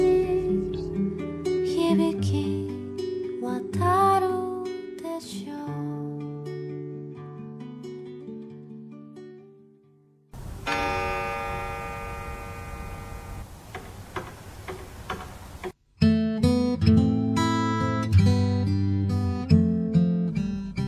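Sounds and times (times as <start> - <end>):
gentle guitar-led melody: 0.0 - 5.0, 6.1 - 13.5, 16.0 - 20.8
old clock chime: 10.4 - 13.6.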